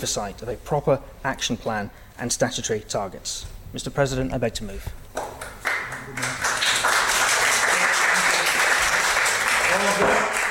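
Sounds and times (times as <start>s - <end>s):
speech: 0.0s - 5.0s
applause from the public gallery: 5.2s - 10.4s.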